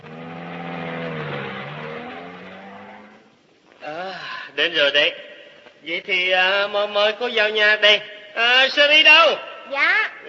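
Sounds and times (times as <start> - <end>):
car engine pulling away carrying passengers: 0.0 - 3.3
speech: 4.6 - 10.2.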